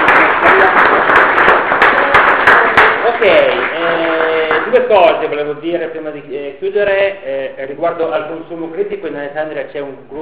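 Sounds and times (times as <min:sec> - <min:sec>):
audience applause at a talk honouring a doctor: 0:00.0 - 0:04.9
speech: 0:04.9 - 0:10.2.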